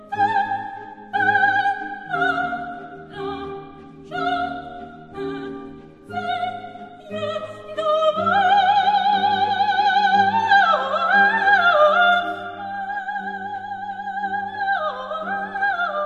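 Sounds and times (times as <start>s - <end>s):
soprano singing: 0.0s - 16.0s.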